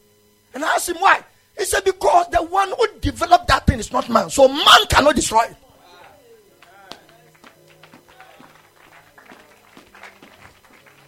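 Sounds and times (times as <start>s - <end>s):
speech: 0.6s - 5.6s
scattered hand claps: 6.0s - 11.0s.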